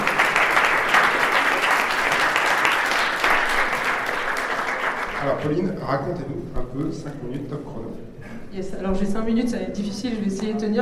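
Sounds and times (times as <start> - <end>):
audience applause: 0.0 - 5.7
speech: 5.4 - 10.7.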